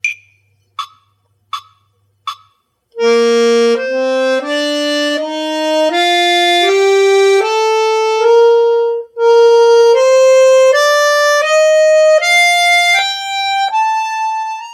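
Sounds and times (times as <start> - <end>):
B flat major scale played legato and staccato: 0.0 - 14.7.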